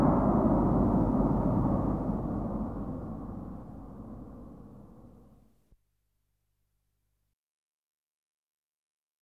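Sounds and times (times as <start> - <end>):
jet aircraft passing overhead: 0.0 - 5.2.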